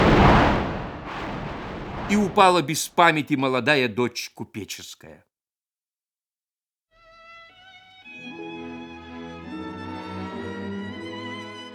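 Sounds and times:
thunder crash: 0.0s - 2.6s
speech: 2.1s - 5.3s.

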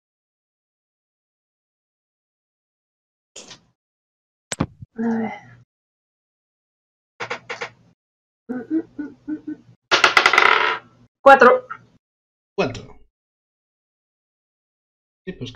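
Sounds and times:
speech: 5.0s - 5.5s, 11.2s - 11.7s, 12.6s - 12.9s, 15.3s - 15.5s
dice rolled on a table: 9.9s - 10.8s.

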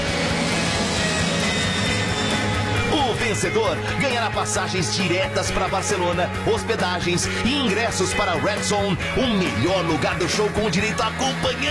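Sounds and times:
Estádio 97 airplane passing overhead: 0.0s - 5.4s
speech: 3.3s - 11.6s.

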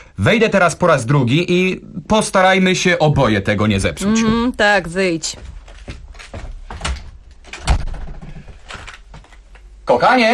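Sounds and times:
speech: 0.2s - 6.0s, 9.9s - 10.3s
door swinging shut with a solid thud: 6.8s - 8.6s.

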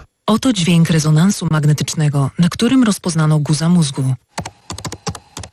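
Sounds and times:
speech: 0.3s - 4.3s
laptop keyboard typing: 4.3s - 5.5s.

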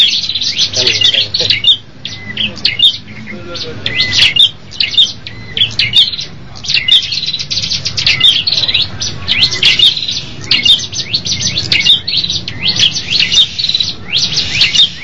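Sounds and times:
bird chirping song: 0.0s - 15.0s.

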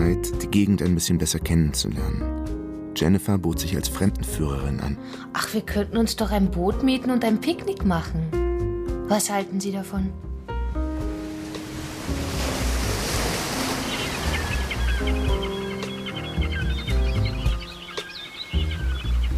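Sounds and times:
speech: 0.1s - 8.4s, 9.1s - 10.3s
waves lapping in a hidden bay: 11.0s - 19.2s.

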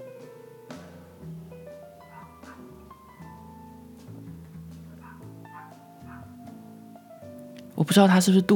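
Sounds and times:
neighbor's dog barking: 2.0s - 2.8s, 4.9s - 6.4s
speech: 7.8s - 8.5s.

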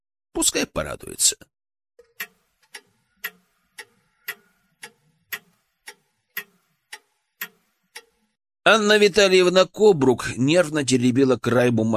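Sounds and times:
speech: 0.4s - 1.6s, 8.7s - 11.9s
clock ticking: 2.0s - 8.4s.

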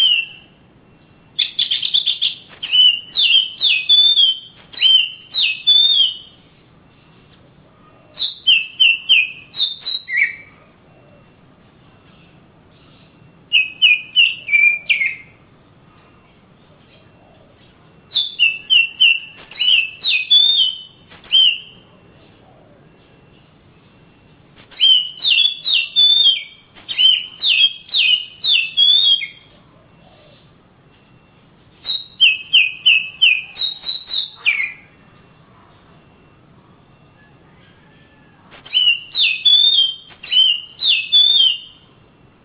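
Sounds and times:
Oriental magpie-robin song: 0.0s - 0.6s, 1.4s - 6.5s, 8.1s - 10.6s, 12.2s - 15.4s, 18.1s - 21.9s, 24.7s - 30.4s, 31.8s - 35.0s, 37.0s - 41.9s.

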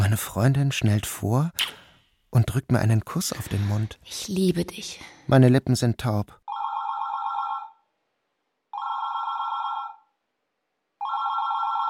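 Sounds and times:
speech: 0.1s - 6.4s
electronic telephone ringing: 6.5s - 7.8s, 8.7s - 10.1s, 11.0s - 11.8s.

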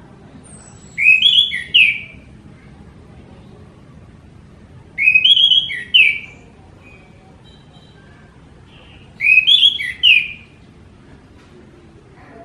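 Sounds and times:
orange-headed thrush singing descending whistled phrases: 0.4s - 2.2s, 5.0s - 7.1s, 9.2s - 10.6s.

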